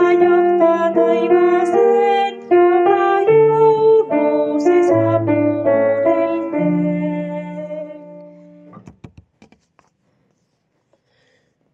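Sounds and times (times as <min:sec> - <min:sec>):
soprano singing: 0:00.0 - 0:08.7.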